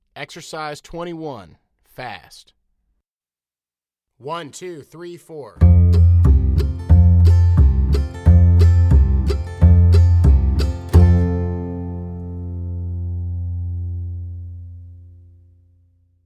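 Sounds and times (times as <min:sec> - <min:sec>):
fast exercise music: 0:05.6 - 0:11.4.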